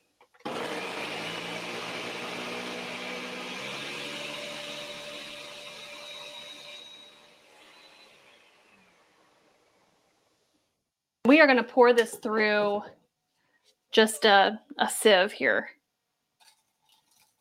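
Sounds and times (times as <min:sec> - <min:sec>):
electric blender blending: 0:00.4 - 0:10.2
speech: 0:11.3 - 0:13.0, 0:13.9 - 0:15.8.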